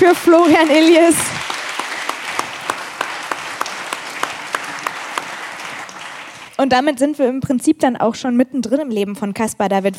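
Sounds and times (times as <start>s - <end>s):
speech: 0.0s - 1.4s, 6.6s - 9.9s
audience applause: 0.0s - 6.6s.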